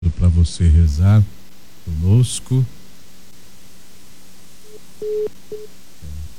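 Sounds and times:
speech: 0.4 - 2.8, 5.0 - 6.2
telephone line tones after a dropped call: 4.6 - 5.7.

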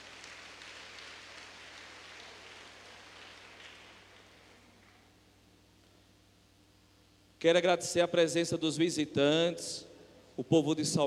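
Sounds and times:
crowd applauding: 0.0 - 4.9
low constant hum: 0.0 - 11.0
speech: 7.4 - 11.0.

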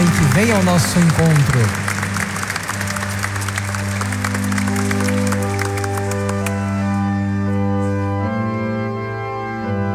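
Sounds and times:
audience applauding: 0.0 - 7.8
sustained organ-like music: 0.0 - 9.9
speech: 0.4 - 1.9.

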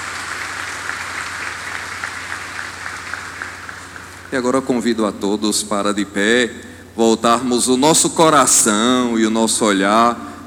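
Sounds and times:
warm round of applause: 0.0 - 4.4
speech: 4.3 - 10.4.

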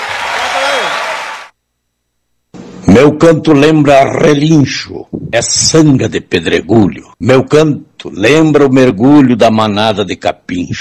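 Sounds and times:
audience applause: 0.0 - 1.5
speech: 3.0 - 10.7.

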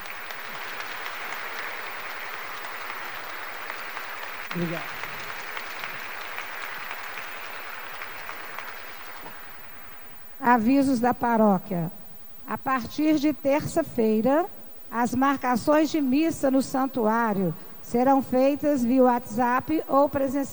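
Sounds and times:
audience applauding: 0.0 - 10.3
speech: 4.5 - 5.1, 10.4 - 20.5.

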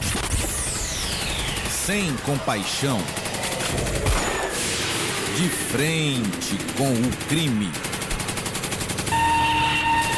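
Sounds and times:
rapid gunfire on a police shooting range: 0.0 - 10.1
speech: 1.9 - 4.0, 5.4 - 7.9.

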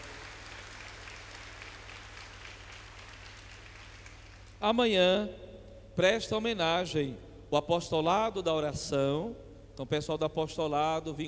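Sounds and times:
audience applause: 0.0 - 4.6
speech: 4.6 - 5.4, 6.0 - 11.2.

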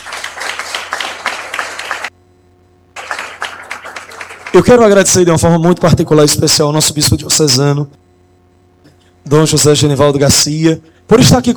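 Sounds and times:
audience applause: 0.0 - 2.1, 3.0 - 4.7
speech: 4.5 - 8.0, 9.3 - 11.5.

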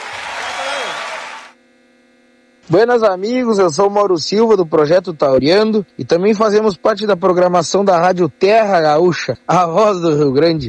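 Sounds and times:
audience applause: 0.0 - 1.6
faint hum: 0.0 - 10.6
speech: 2.7 - 10.6.

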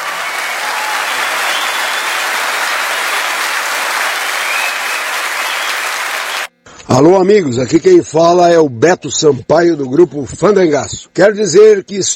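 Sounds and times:
audience applause: 0.0 - 6.5
speech: 7.0 - 12.1.

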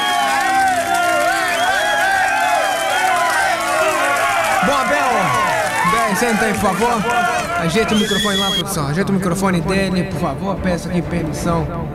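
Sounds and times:
clapping: 0.0 - 8.4
crowd cheering and shouting: 0.0 - 8.7
speech: 6.2 - 11.9.

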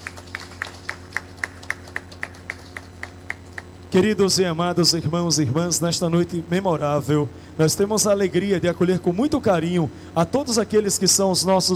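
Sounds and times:
audience applause: 0.0 - 3.7
speech: 3.9 - 11.7.

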